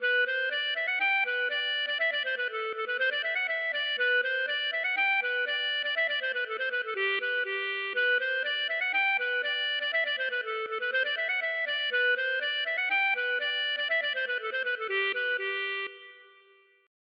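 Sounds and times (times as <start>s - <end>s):
polka music: 0.0s - 16.2s.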